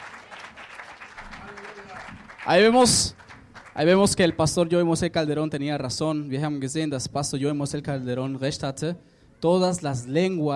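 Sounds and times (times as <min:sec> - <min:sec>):
audience applauding: 0:00.0 - 0:04.8
speech: 0:02.4 - 0:03.2, 0:03.8 - 0:10.5.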